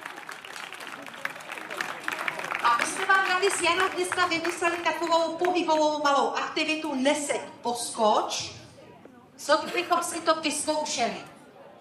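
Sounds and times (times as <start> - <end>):
audience applause: 0.0 - 5.1
speech: 2.8 - 8.6, 9.4 - 11.3.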